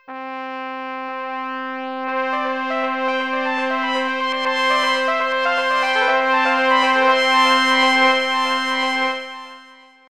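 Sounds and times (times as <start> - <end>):
battle music: 1.1 - 9.4.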